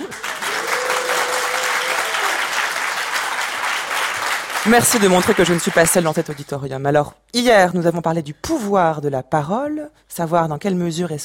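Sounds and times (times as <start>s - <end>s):
audience applause in the auditorium of the Palais des Beaux-Arts de Lille: 0.0s - 6.5s
speech: 4.7s - 11.2s.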